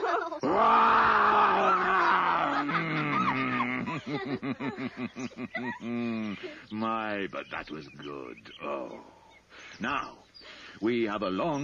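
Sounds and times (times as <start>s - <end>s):
laughter: 0.0s - 6.7s
man's voice imitating a lion's roar: 0.4s - 4.0s
speech: 4.4s - 11.6s.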